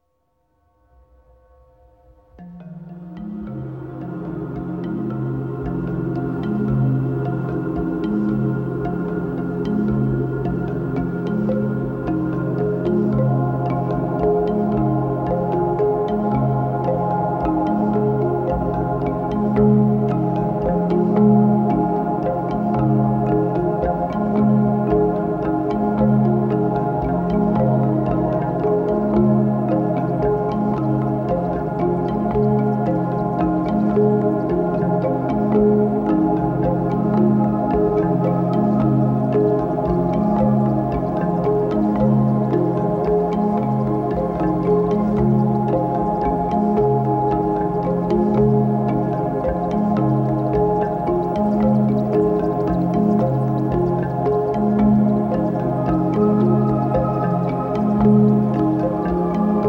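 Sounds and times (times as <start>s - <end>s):
slow marimbas: 2.3s - 59.6s.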